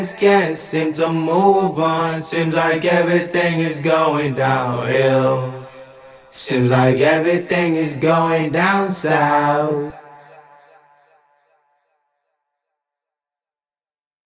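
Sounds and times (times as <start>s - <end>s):
person singing indie a cappella in E minor: 0.0s - 10.6s.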